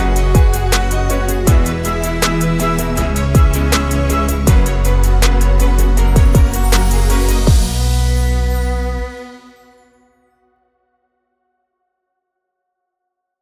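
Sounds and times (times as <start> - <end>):
cheerful positive funny short background music for video: 0.0 - 9.8.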